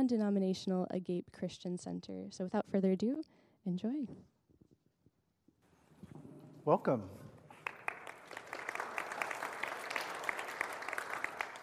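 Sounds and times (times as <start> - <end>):
speech: 0.0 - 4.3, 6.6 - 7.2
audience applause: 7.5 - 11.6.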